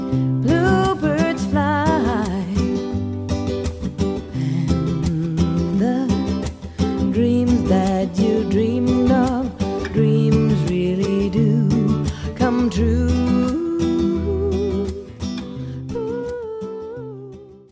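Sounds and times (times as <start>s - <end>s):
female singer singing: 0.1s - 17.7s.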